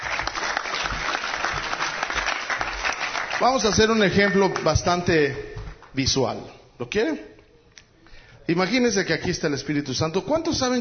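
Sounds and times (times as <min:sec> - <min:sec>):
audience applause: 0:00.0 - 0:05.1
speech: 0:03.4 - 0:07.3, 0:08.5 - 0:10.8.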